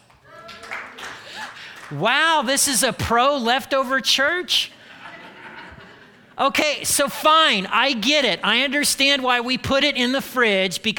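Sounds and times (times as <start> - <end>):
audience applause: 0.0 - 2.0
speech: 1.9 - 4.8, 6.4 - 10.9
laughter: 4.7 - 6.4.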